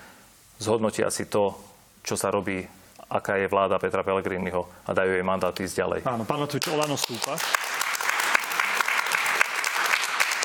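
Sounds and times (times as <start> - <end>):
speech: 0.6 - 7.6
audience applause in a televised political debate: 6.6 - 10.4.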